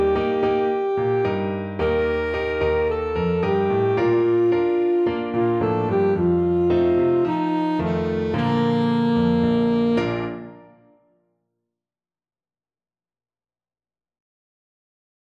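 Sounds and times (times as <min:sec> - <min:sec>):
alto saxophone: 0:00.0 - 0:11.0.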